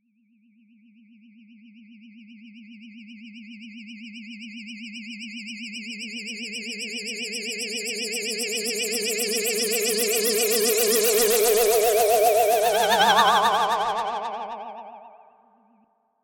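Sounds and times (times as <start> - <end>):
ghost sound effect: 9.0 - 15.4.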